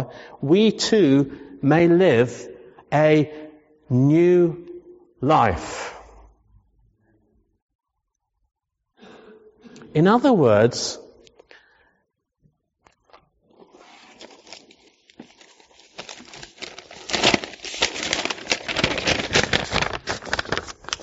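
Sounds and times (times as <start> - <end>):
speech: 0.0 - 6.0, 10.0 - 11.0
piece of paper crinkling and crumpling during a sermon: 12.8 - 21.0.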